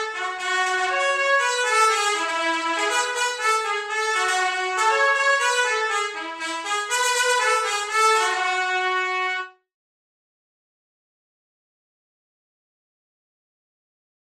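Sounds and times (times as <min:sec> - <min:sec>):
B-flat trumpet: 0:00.0 - 0:09.7.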